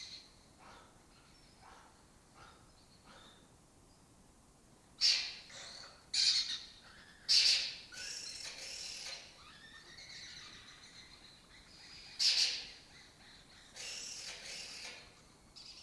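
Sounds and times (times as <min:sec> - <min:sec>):
lesser kestrel harsh screeching calls: 0:05.0 - 0:15.2.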